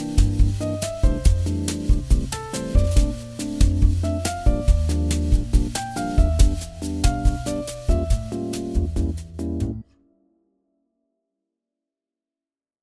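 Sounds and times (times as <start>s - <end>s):
bossa nova music: 0.0s - 9.8s.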